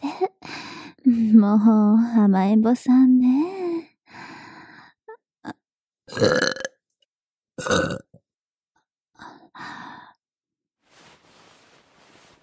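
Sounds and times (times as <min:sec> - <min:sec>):
speech: 0:01.2 - 0:03.5, 0:06.2 - 0:06.4
woman burping: 0:05.4 - 0:06.8, 0:07.6 - 0:08.1.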